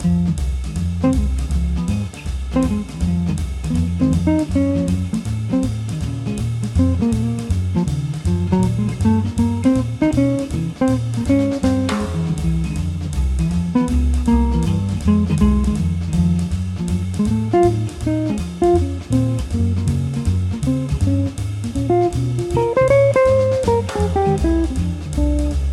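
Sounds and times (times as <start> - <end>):
tarantella variation: 0.0 - 25.7.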